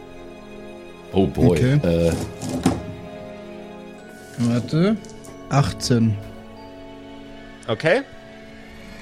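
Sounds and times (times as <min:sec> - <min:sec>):
speech: 0:01.1 - 0:02.7, 0:04.4 - 0:06.3, 0:07.7 - 0:08.2
hundred-sided die landing with a knock: 0:02.1 - 0:03.0.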